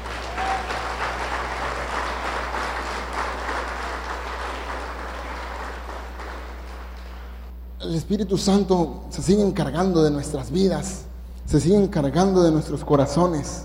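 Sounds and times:
audience applauding: 0:00.0 - 0:07.5
speech: 0:07.9 - 0:13.6.

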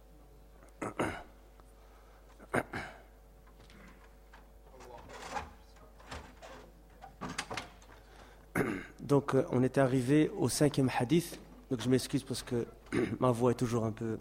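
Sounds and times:
door closing: 0:04.8 - 0:08.0
speech: 0:09.1 - 0:14.1.

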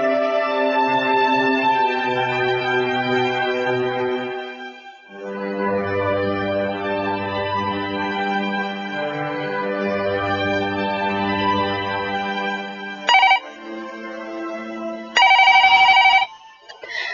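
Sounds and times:
soft sustained music: 0:00.0 - 0:17.1
home telephone ringing: 0:13.1 - 0:13.5, 0:15.2 - 0:16.4.

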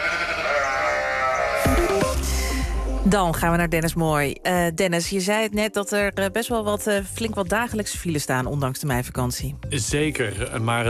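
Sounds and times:
sheep bleating: 0:00.0 - 0:02.1
speech: 0:03.0 - 0:10.8.

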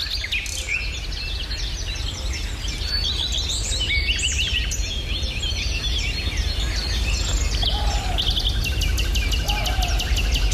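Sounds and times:
nightingale song in Meijendel: 0:00.0 - 0:10.5
croaking frogs in Meijendel: 0:07.2 - 0:10.5.

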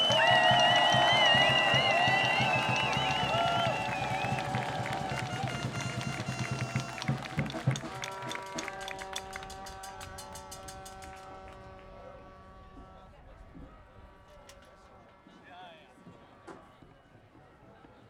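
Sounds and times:
shouts: 0:00.0 - 0:07.2
whistles: 0:00.0 - 0:08.8
crowd clapping at a political protest event: 0:00.0 - 0:11.9.

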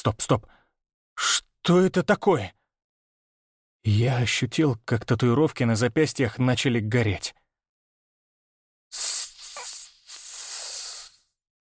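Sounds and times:
speech: 0:00.0 - 0:00.6, 0:01.2 - 0:02.6, 0:03.8 - 0:07.4, 0:08.9 - 0:09.2
person hissing: 0:08.9 - 0:11.4.

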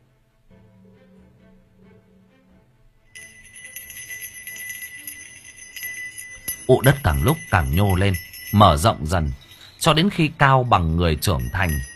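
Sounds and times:
bells jingling: 0:03.1 - 0:11.9
speech: 0:06.7 - 0:11.9.

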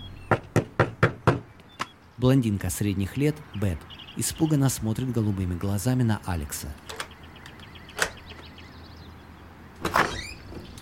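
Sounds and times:
knocking on a door: 0:00.3 - 0:01.5
speech: 0:02.2 - 0:07.0.

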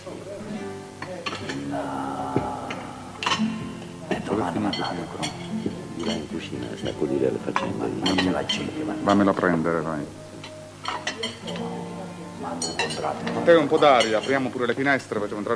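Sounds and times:
china dishes and metal cutlery clinking as a table is set: 0:01.0 - 0:01.7, 0:02.4 - 0:09.6, 0:10.4 - 0:11.8, 0:12.4 - 0:14.7
speech: 0:01.7 - 0:02.5, 0:04.4 - 0:05.4, 0:06.0 - 0:10.2, 0:12.4 - 0:15.5.

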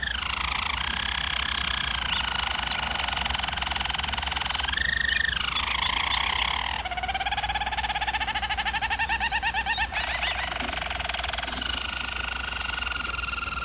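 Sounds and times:
bird song with whistles and trills: 0:00.0 - 0:13.6.

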